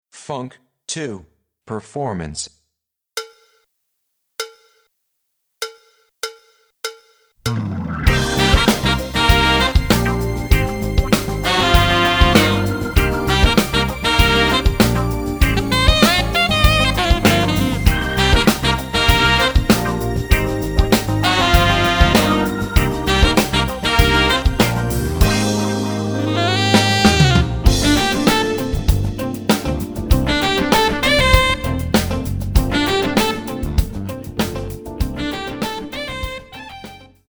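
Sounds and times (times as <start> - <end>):
funk drum sample: 8.1 - 37.2.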